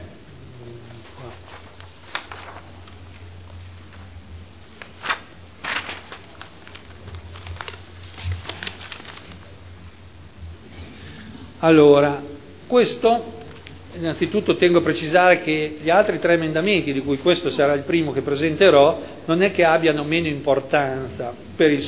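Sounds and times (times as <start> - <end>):
steady low hum: 0.0 - 14.0
paper page being turned: 1.0 - 3.3, 4.8 - 9.4
speech: 11.6 - 13.3, 14.0 - 21.8.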